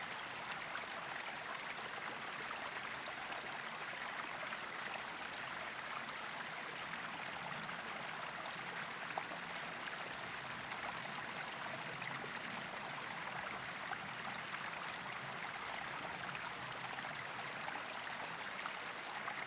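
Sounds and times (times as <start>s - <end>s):
stream hissing: 0.1s - 6.8s, 8.0s - 13.7s, 14.4s - 19.3s
upland green bush-cricket singing: 0.1s - 7.2s, 8.0s - 19.2s.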